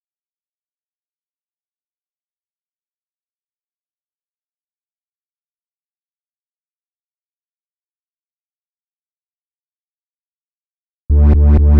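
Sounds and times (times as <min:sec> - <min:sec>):
bass in G: 0:11.1 - 0:11.7
complex electro synths: 0:11.1 - 0:11.7.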